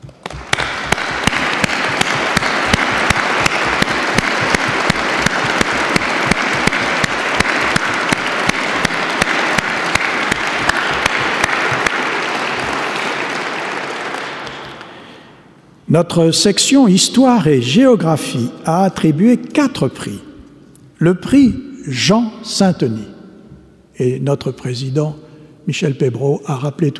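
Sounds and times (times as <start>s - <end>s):
audience applause: 0.0s - 15.3s
speech: 15.9s - 20.3s, 21.0s - 23.1s, 24.0s - 26.9s.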